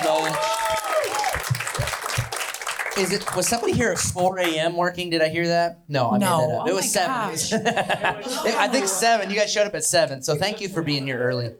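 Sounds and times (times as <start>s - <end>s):
whoops and cheers: 0.0s - 1.9s
crowd clapping: 0.0s - 4.6s
speech: 3.0s - 11.5s
laughter: 6.3s - 11.5s.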